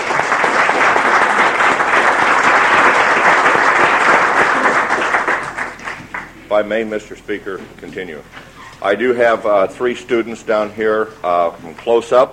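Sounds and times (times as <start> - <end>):
applause in a legislative chamber: 0.0 - 6.3
speech: 6.5 - 12.3.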